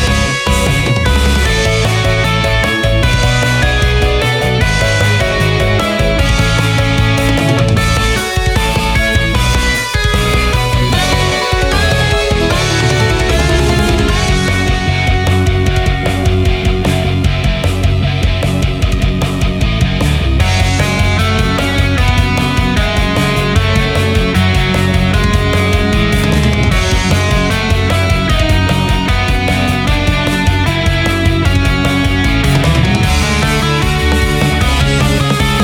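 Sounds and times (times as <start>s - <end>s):
JRPG battle music: 0.0s - 35.6s.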